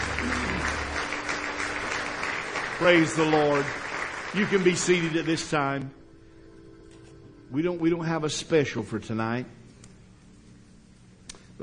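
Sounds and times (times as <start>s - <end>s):
church congregation clapping in praise during an evening service: 0.0s - 6.0s
speech: 2.8s - 6.0s, 7.5s - 9.6s.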